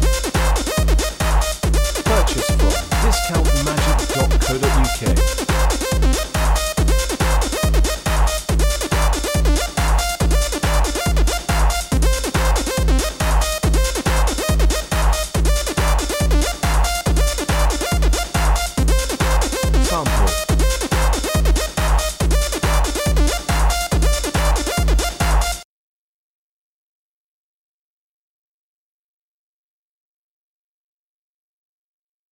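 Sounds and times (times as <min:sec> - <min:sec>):
techno backing track: 0:00.0 - 0:25.6.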